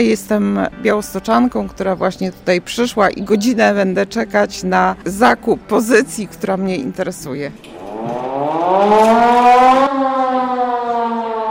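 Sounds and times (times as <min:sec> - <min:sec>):
speech: 0:00.0 - 0:10.1
air-raid siren wailing: 0:07.6 - 0:11.4.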